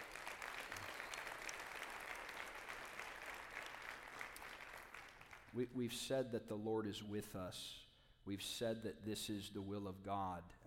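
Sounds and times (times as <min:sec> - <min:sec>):
audience round of applause: 0:00.0 - 0:05.5
speech: 0:05.5 - 0:10.6.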